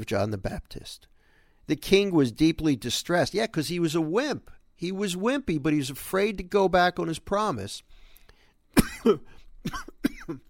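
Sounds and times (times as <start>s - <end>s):
speech: 0.0s - 1.1s, 1.7s - 8.0s, 9.0s - 10.4s
man clearing his throat: 8.8s - 10.4s
man coughing while reading scripture aloud: 8.8s - 10.4s.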